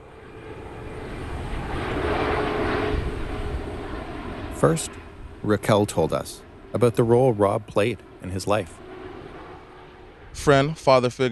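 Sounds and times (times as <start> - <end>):
airplane passing over a football field under the landing path to Toronto's International Airport: 0.0 - 11.3
speech: 4.6 - 8.8, 10.4 - 11.3.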